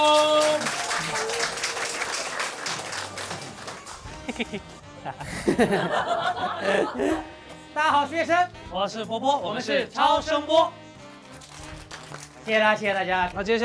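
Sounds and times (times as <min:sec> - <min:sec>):
audience applause: 0:00.0 - 0:04.2
laughter: 0:02.6 - 0:07.3
speech: 0:04.3 - 0:10.8, 0:12.5 - 0:13.6.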